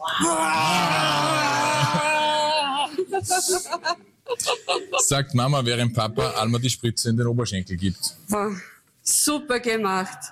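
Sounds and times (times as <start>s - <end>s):
several voices roaring in imitation of a bear: 0.0s - 3.1s
speech: 0.2s - 1.2s, 3.2s - 10.2s
laughter: 0.5s - 5.4s.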